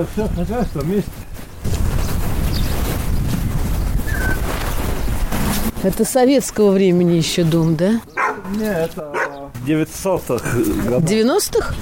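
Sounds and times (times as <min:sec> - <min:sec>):
speech: 0:00.0 - 0:01.4, 0:05.8 - 0:11.7
strong wind blowing on microphone: 0:00.0 - 0:05.9.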